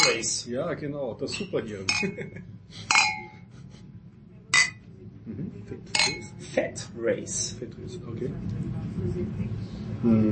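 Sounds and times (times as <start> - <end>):
drinking glasses clinking in a toast: 0.0 - 0.4, 1.2 - 3.5, 4.6 - 4.8, 5.9 - 6.4
low hum: 0.0 - 10.3
speech: 0.2 - 3.0, 5.3 - 10.3.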